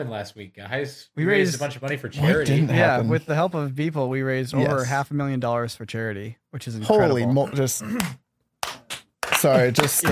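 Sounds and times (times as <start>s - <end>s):
speech: 0.0s - 8.2s, 9.4s - 10.0s
little clap: 8.0s - 10.0s.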